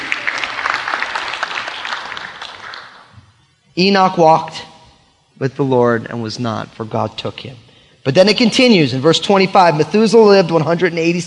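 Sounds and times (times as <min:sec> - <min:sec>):
audience clapping: 0:00.0 - 0:03.1
speech: 0:03.8 - 0:04.7, 0:05.4 - 0:11.2.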